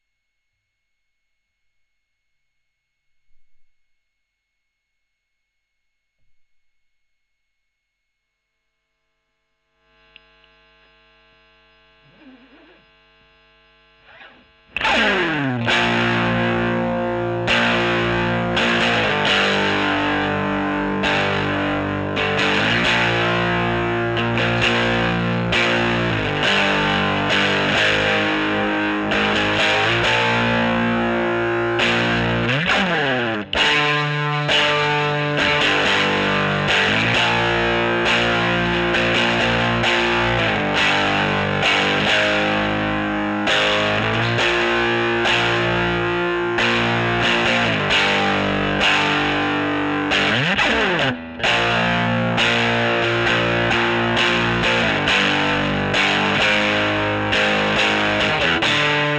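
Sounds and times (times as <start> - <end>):
overdriven electric guitar recorded with Gefell: 9.8 - 59.1.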